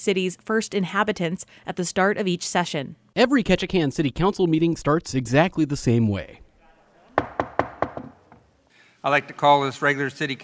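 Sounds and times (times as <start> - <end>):
speech: 0.0 - 6.4, 9.0 - 10.4
gavel banging to open meeting: 7.2 - 8.5.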